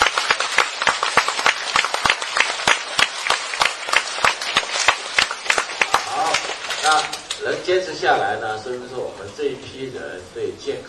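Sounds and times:
audience applause: 0.0 - 7.4
speech: 7.7 - 10.8.

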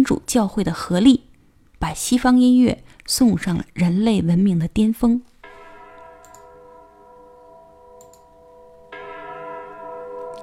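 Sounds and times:
speech: 0.0 - 5.3
church bells ringing: 5.4 - 10.4.

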